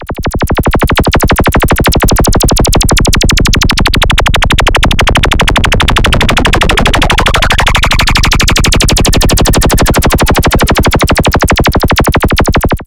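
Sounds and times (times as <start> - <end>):
pulsating sound: 0.0 - 12.8.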